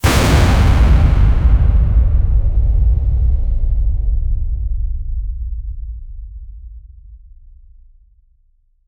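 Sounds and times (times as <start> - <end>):
radiant energy explosion: 0.0 - 4.1.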